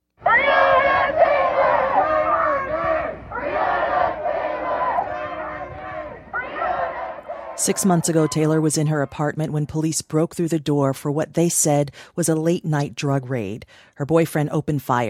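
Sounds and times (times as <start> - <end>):
large protest crowd shouting in Portland, Oregon: 0.2 - 9.5
speech: 7.6 - 15.0.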